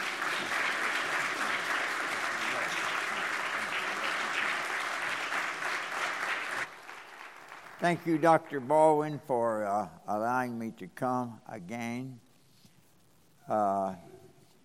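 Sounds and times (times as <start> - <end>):
church audience at Crossroads applauding a speaker: 0.0 - 8.3
speech: 7.8 - 12.2, 13.5 - 14.1.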